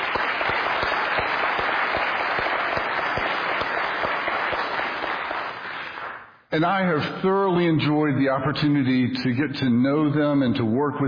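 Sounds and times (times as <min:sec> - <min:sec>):
audience applause: 0:00.0 - 0:06.3
speech: 0:06.6 - 0:11.0.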